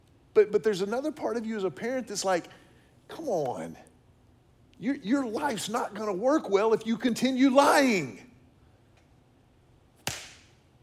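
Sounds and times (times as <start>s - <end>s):
speech: 0.4s - 3.9s, 4.8s - 8.3s
hand clap: 10.0s - 10.6s.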